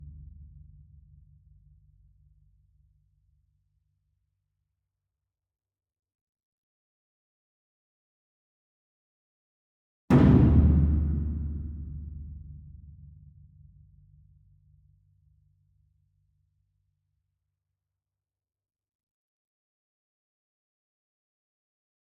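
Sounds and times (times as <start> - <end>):
concert bass drum in an ensemble: 10.1 - 12.4.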